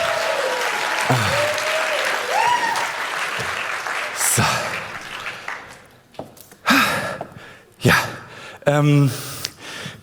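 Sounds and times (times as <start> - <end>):
audience applause: 0.0 - 6.0
speech: 1.1 - 1.4, 8.7 - 9.3.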